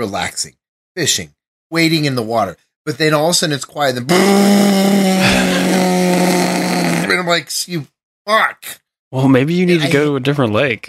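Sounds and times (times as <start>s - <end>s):
speech: 0.0s - 6.6s, 7.3s - 10.8s
voice imitating a loud roaring motorboat engine: 4.1s - 7.3s
laughter: 5.2s - 6.0s.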